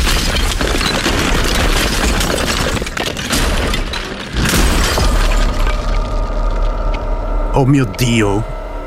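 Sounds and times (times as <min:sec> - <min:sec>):
hammer blow striking and breaking something: 0:00.0 - 0:06.2
clattering debris: 0:00.0 - 0:06.7
speech: 0:07.6 - 0:08.6.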